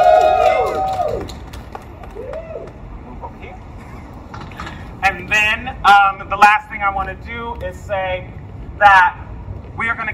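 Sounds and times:
whoops and cheers: 0.0 - 1.4, 2.0 - 2.8
outdoor crowd applause: 0.0 - 2.7
steady noise: 0.0 - 10.1
speech: 6.4 - 9.2, 9.8 - 10.1.

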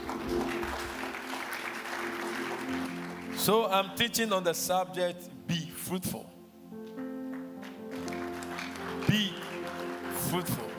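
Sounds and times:
crowd clapping: 0.0 - 3.9, 7.3 - 10.7
speech: 3.4 - 6.4, 9.1 - 9.4, 10.3 - 10.7.

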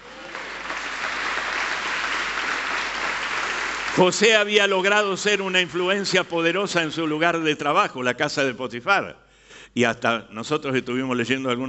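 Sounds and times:
audience applause: 0.0 - 5.0
speech: 4.0 - 9.2, 9.8 - 11.6.

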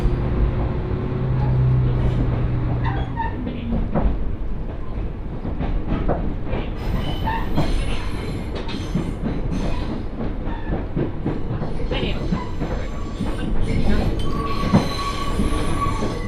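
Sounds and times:
Mizushima Rinkai Railway train rumbling: 0.0 - 16.2.

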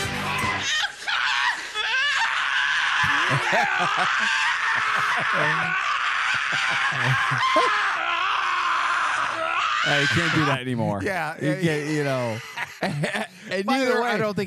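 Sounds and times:
man screaming, clips edited together: 0.2 - 10.6
laughter: 0.6 - 8.0, 9.9 - 14.4
speech: 3.7 - 4.5, 5.2 - 5.9, 6.5 - 8.0, 9.9 - 14.4.

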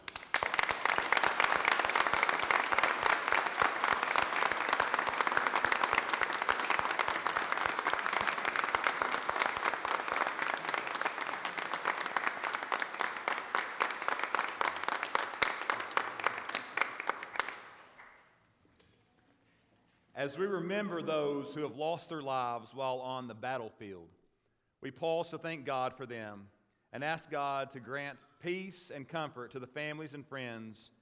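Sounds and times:
crowd applauding: 0.0 - 18.2
speech: 20.2 - 24.2, 24.8 - 31.0.

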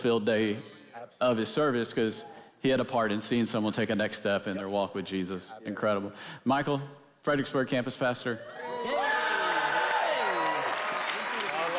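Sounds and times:
speech: 0.0 - 9.0
voices whooping: 8.4 - 11.5
home crowd applauding: 8.5 - 11.7.

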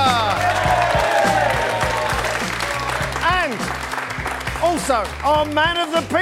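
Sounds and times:
studio audience clapping on a comedy panel show: 0.0 - 6.2
speech: 4.9 - 6.2.

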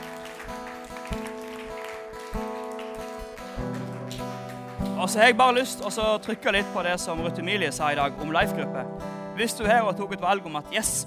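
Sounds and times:
applause: 0.0 - 5.2
speech: 5.0 - 11.0.

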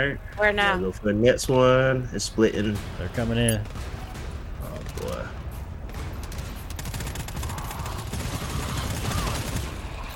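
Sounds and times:
speech: 0.0 - 3.9
video game gunfire: 2.6 - 10.1.

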